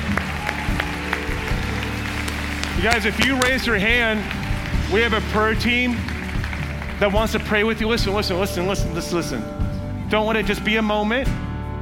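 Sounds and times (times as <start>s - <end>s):
audience applause: 0.0s - 8.2s
speech: 2.8s - 6.1s, 7.0s - 11.4s.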